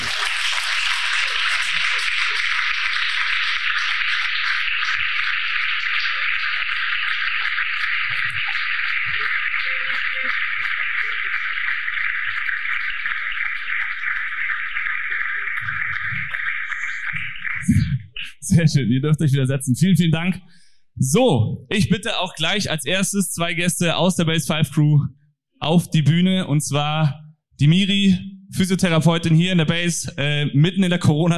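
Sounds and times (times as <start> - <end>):
audience standing and applauding loudly: 0.0 - 18.3
speech: 18.6 - 31.3.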